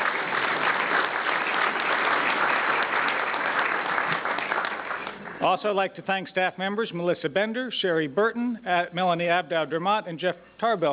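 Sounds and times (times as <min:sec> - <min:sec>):
audience applause: 0:00.0 - 0:05.4
speech: 0:05.4 - 0:10.9.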